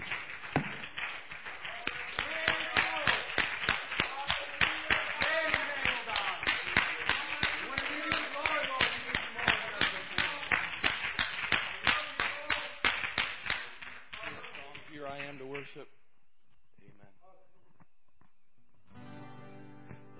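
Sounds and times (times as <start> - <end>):
congregation applause in a church: 0.0 - 15.8.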